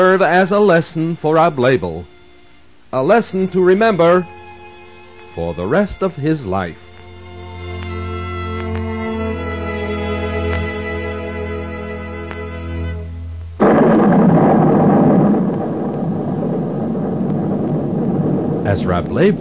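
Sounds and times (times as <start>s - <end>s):
speech: 0.0s - 2.2s, 2.9s - 4.4s, 5.4s - 6.8s, 18.7s - 19.3s
harmonic drone: 0.0s - 19.3s
rushing wind: 13.8s - 19.3s.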